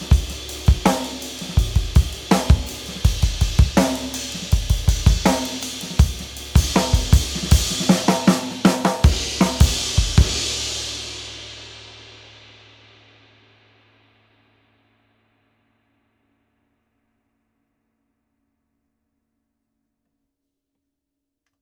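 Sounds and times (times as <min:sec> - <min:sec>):
vintage crash cymbals: 0:00.0 - 0:14.8.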